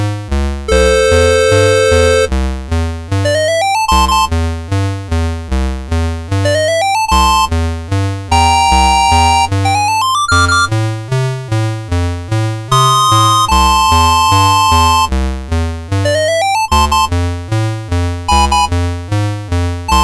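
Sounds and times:
constant bass tone: 0.0s - 20.0s.

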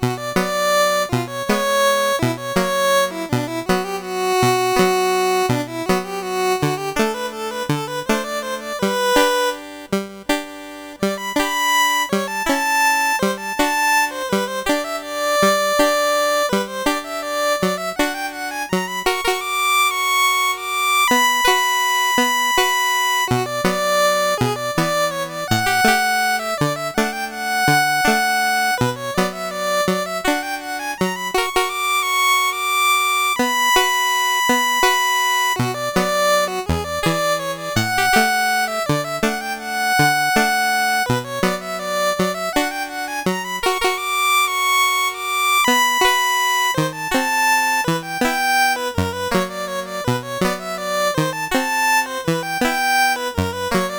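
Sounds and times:
chiptune barcarolle on MOS6581 sound chip: 0.0s - 53.9s.

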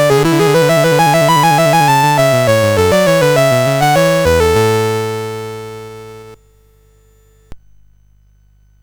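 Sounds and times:
two-part piece played on a CSG8580 sound chip: 0.0s - 6.4s.

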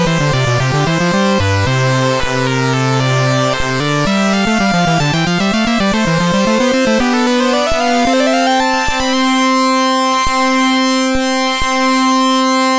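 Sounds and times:
chiptune fugue in C major on a MOS6581R3 sound chip: 0.0s - 12.6s.

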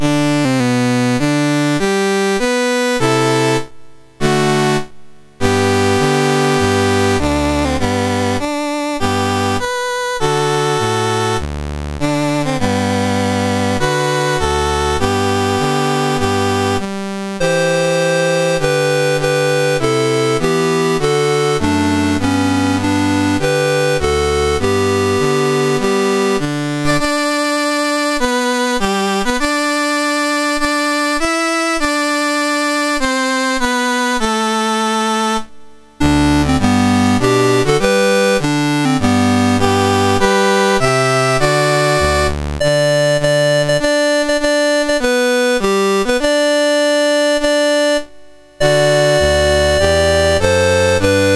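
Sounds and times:
national anthem on MOS6581R2 sound chip: 0.0s - 51.3s.

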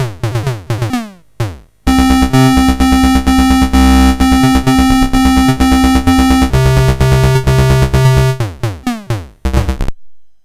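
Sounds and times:
MOS6581R4 chiptune music: 1.9s - 9.9s.

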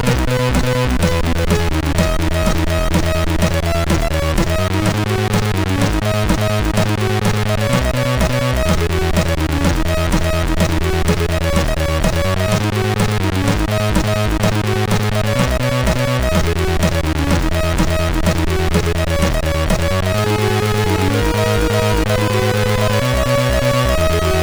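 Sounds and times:
bassline intro on MOS6581R4 sound chip: 0.0s - 24.4s.

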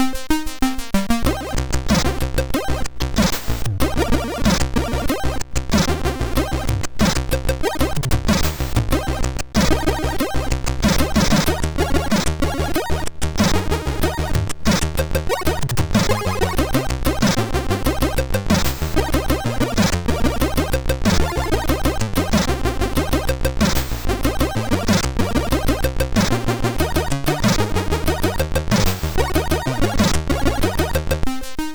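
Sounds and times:
MOS 6581R2 SID chip music: 1.2s - 31.7s.

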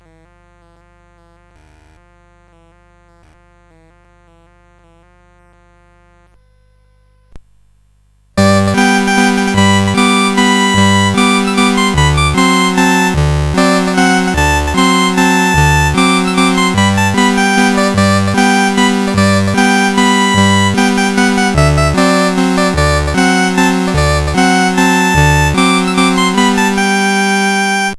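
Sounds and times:
chiptune melody on CSG8580R5: 8.4s - 27.9s.

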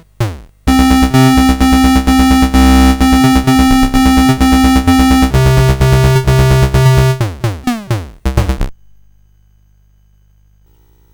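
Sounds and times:
music on CSG 8580R5 sound chip: 0.0s - 8.7s.

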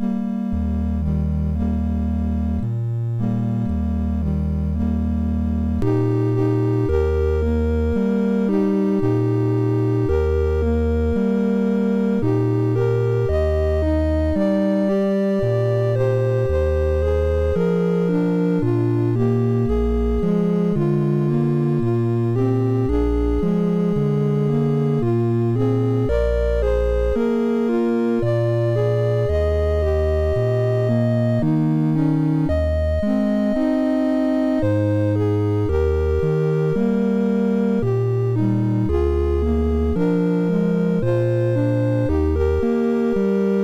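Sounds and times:
lullaby on MOS6581 sound chip: 0.0s - 43.6s.

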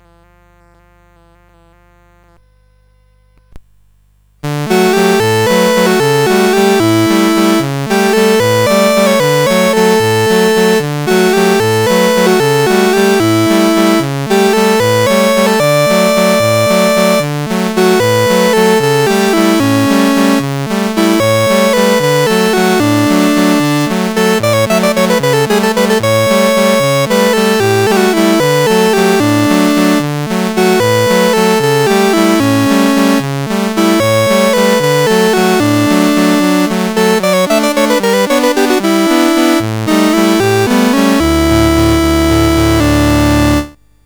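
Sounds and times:
Italian folk song on MOS CSG8580R5: 4.5s - 43.8s.

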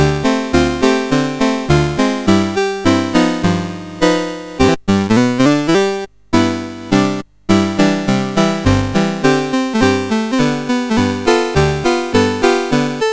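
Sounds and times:
song played on a CSG8580R5 sound chip: 0.0s - 13.1s.

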